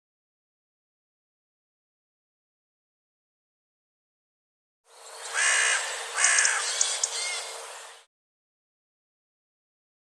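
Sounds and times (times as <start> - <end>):
bird cawing: 5.2 - 8.0.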